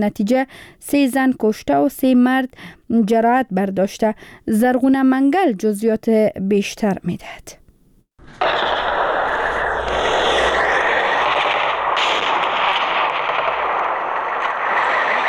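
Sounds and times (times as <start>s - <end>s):
speech: 0.0s - 7.6s
heavy gunfire from clashes in Barikot and Dokalam, Nari district, Kunar province: 8.3s - 15.2s.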